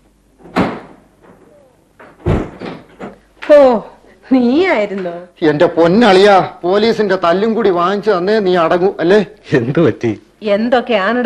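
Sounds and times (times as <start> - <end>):
door being opened with thudding bangs: 0.4 - 3.2
speech: 3.5 - 11.2.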